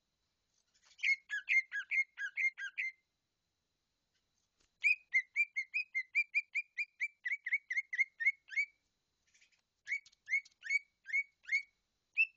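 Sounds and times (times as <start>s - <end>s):
leafbird song of whistled phrases: 0.8s - 3.0s, 4.8s - 8.8s, 9.4s - 12.3s.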